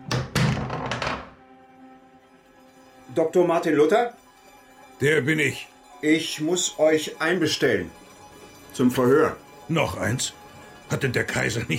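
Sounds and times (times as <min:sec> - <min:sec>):
door being opened: 0:00.0 - 0:01.4
heavy wooden thunks: 0:00.0 - 0:01.4
speech: 0:03.2 - 0:04.2, 0:05.0 - 0:08.0, 0:08.7 - 0:11.7.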